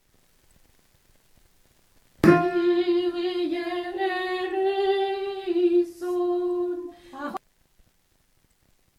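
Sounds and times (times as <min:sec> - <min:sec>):
alto voice singing: 0:02.2 - 0:07.4.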